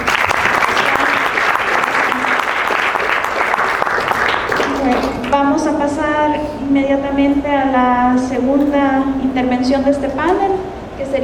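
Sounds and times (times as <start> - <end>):
audience applause: 0.0 - 5.4
speech: 5.4 - 11.2.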